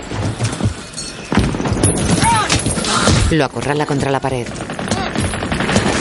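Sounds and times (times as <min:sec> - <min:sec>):
gunshots in the World War II film Saving Private Ryan: 0:01.3 - 0:05.9
speech: 0:03.3 - 0:04.8.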